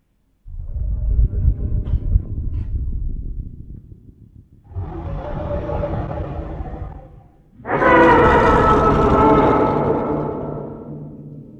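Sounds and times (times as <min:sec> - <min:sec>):
reconstructed T-Rex low rumbling growl: 0:00.4 - 0:11.5
reconstructed T-Rex open-mouthed roar: 0:04.7 - 0:10.9.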